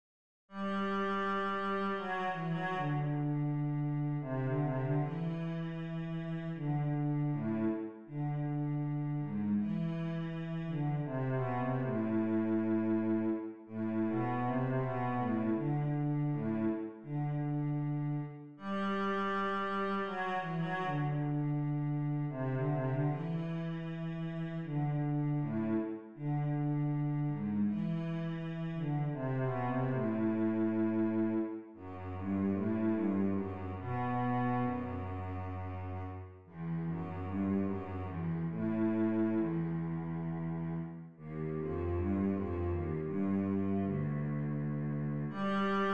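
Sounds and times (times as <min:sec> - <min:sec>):
cello nocturne: 0:00.5 - 0:45.9.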